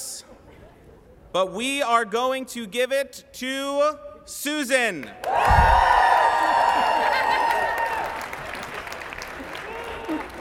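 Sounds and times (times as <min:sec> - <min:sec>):
speech: 0:01.3 - 0:06.6
round of applause: 0:05.2 - 0:10.3.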